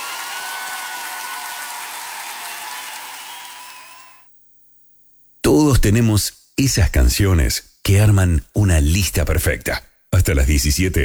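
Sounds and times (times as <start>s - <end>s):
applause: 0.0s - 4.2s
speech: 5.5s - 11.0s.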